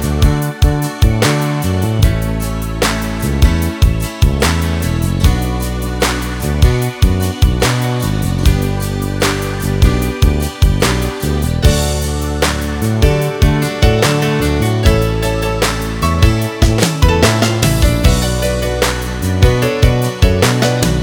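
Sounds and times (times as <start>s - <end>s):
piano ballad: 0.0s - 21.0s.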